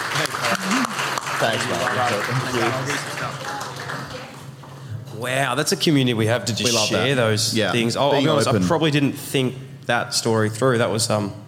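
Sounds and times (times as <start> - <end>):
round of applause: 0.0 - 4.7
speech: 1.4 - 3.6, 5.2 - 11.4.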